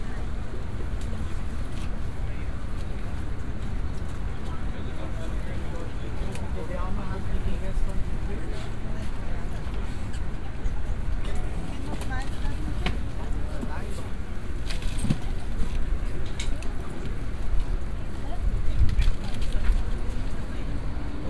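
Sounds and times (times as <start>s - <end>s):
fruit stand ambience at a market square: 0.0s - 21.2s.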